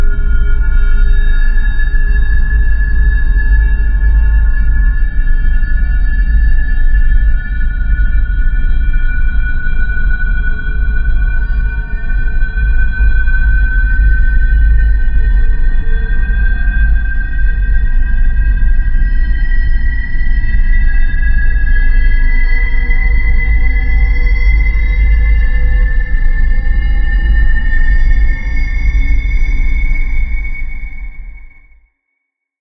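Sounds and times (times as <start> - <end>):
scratchy siren drone: 0.0 - 31.4.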